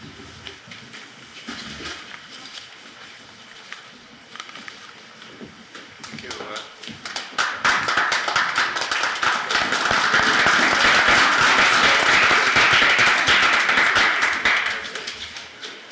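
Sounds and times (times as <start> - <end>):
audience applause: 7.0 - 15.6.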